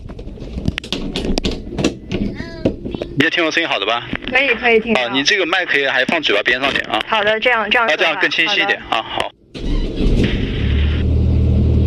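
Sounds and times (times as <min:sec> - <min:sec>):
steady low droning hum: 0:00.0 - 0:11.8
speech: 0:03.2 - 0:09.3
aircraft engine starting up: 0:08.9 - 0:11.8.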